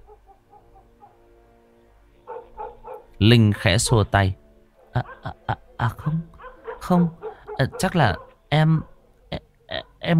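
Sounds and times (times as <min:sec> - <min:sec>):
yellow dog barking: 0:00.0 - 0:01.2, 0:02.3 - 0:04.2, 0:04.8 - 0:09.2
speech: 0:03.2 - 0:04.4, 0:05.0 - 0:06.3, 0:06.9 - 0:08.9, 0:09.7 - 0:10.1.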